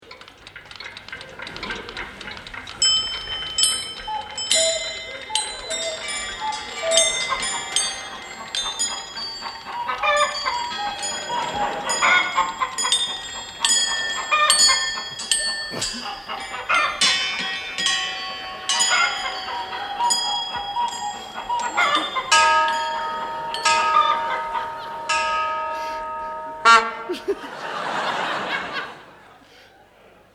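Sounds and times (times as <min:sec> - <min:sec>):
cuckoo calling: 0:00.1 - 0:30.0
laughter: 0:03.7 - 0:30.3.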